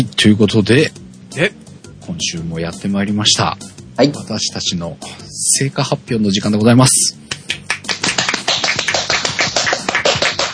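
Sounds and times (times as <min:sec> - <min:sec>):
speech: 0:00.2 - 0:07.2
hand clapping: 0:07.2 - 0:10.5.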